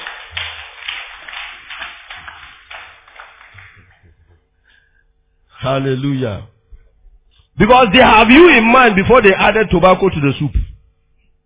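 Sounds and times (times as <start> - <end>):
audience clapping: 0.0 - 4.5
speech: 5.6 - 6.5, 7.6 - 10.6.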